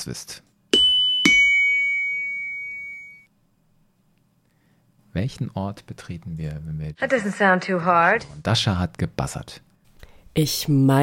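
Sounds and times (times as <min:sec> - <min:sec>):
speech: 0:00.0 - 0:00.5, 0:05.2 - 0:09.7, 0:10.4 - 0:11.0
shop door bell chime strikes from film: 0:00.8 - 0:03.3.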